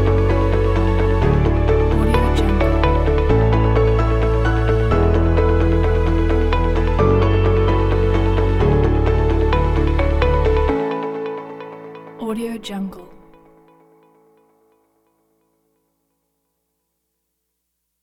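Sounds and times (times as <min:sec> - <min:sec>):
upbeat corporate music: 0:00.0 - 0:13.2.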